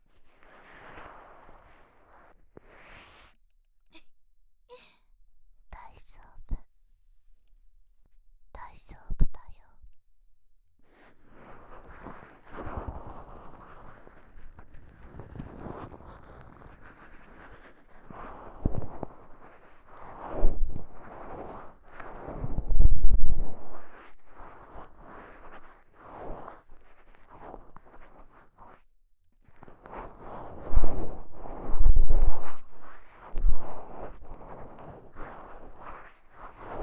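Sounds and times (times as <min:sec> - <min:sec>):
massage sounds for sleep in the right ear: 0:00.1 - 0:03.4, 0:11.0 - 0:28.8, 0:29.4 - 0:36.8.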